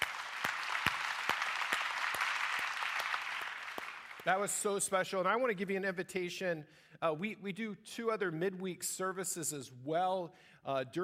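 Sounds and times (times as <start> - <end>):
audience applause: 0.0 - 4.5
speech: 4.2 - 11.0.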